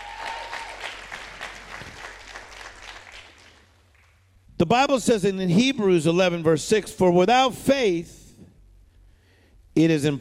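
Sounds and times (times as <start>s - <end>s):
audience clapping hands: 0.0s - 4.3s
speech: 4.6s - 8.2s, 9.8s - 10.1s.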